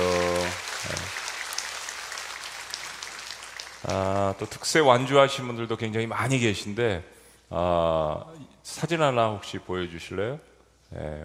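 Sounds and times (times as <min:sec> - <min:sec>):
audience applause: 0:00.0 - 0:04.6
speech: 0:03.8 - 0:11.2.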